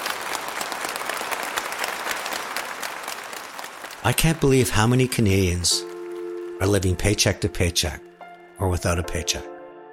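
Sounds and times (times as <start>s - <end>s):
audience applause: 0.0s - 7.9s
speech: 4.0s - 5.9s, 6.6s - 9.5s.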